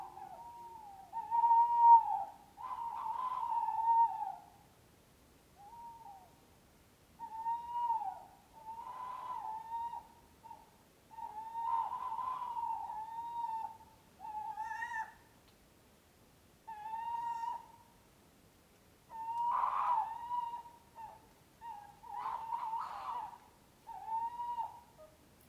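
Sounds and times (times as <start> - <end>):
owl hooting: 0.0 - 4.6, 5.6 - 6.4, 7.2 - 15.2, 16.7 - 17.9, 19.1 - 25.4.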